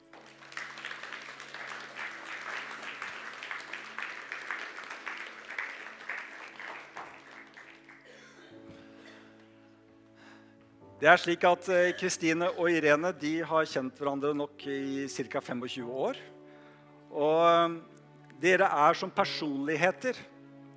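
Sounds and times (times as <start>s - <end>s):
audience applause: 0.0s - 8.4s
speech: 11.0s - 16.3s, 17.2s - 20.3s.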